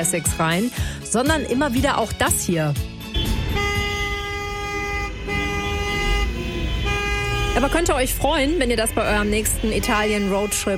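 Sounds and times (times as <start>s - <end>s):
speech: 0.0s - 3.0s, 7.6s - 10.7s
low rumble of traffic: 1.2s - 10.7s
car horns honking on Italian streets: 3.0s - 10.7s.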